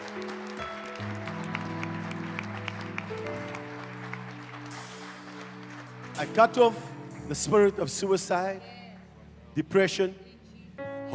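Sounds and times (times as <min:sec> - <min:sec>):
audience clapping hands: 0:00.0 - 0:07.7
speech: 0:06.2 - 0:08.8, 0:09.6 - 0:10.2.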